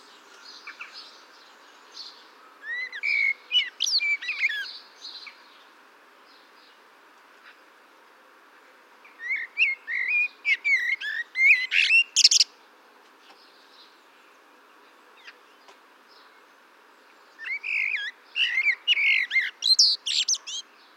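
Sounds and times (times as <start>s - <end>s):
Eurasian blackbird singing: 0.0s - 5.6s, 9.1s - 12.5s, 17.1s - 20.9s.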